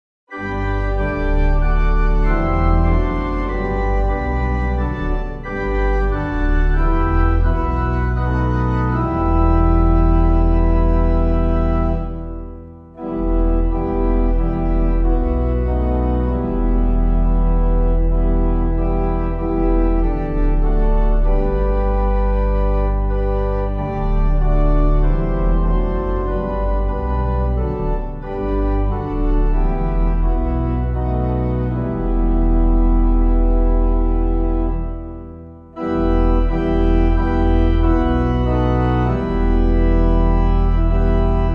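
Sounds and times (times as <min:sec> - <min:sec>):
organ playing a hymn: 0:00.3 - 0:41.5.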